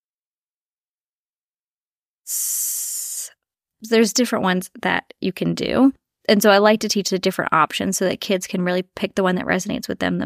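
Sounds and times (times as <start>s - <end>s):
person breathing out in a long hiss imitating a snake: 2.3s - 3.4s
speech: 3.8s - 10.2s.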